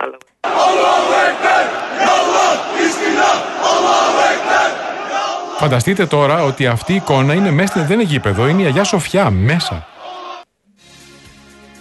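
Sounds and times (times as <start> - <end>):
Erdogan supporters chanting slogans inside Hagia Sophia: 0.4 - 9.0, 9.7 - 10.5
speech: 5.6 - 9.9.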